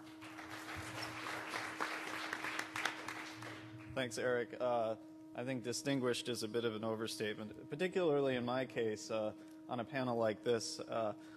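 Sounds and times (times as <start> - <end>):
audience applause: 0.0 - 3.9
speech: 4.0 - 11.3.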